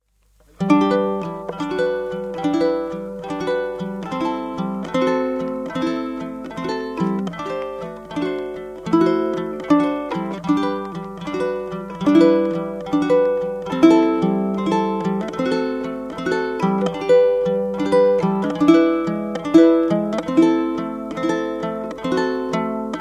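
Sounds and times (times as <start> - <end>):
koa ukulele: 0.0 - 23.0
guitar: 0.5 - 23.0.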